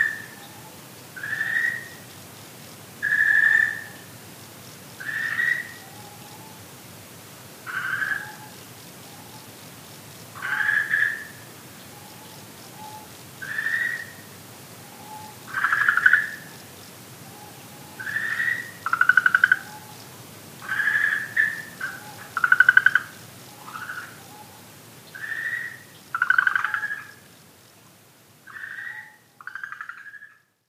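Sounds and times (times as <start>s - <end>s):
Okinawa green tree frog calling: 0.0s - 2.1s, 3.0s - 4.2s, 5.0s - 6.7s, 7.6s - 9.6s, 10.3s - 27.3s, 28.4s - 30.6s.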